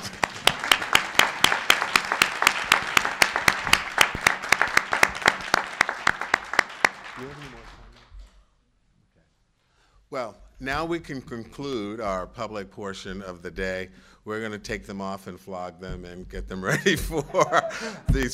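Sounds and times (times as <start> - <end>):
audience applause: 0.0 - 8.4
speech: 10.6 - 18.3
laughter: 16.6 - 18.3.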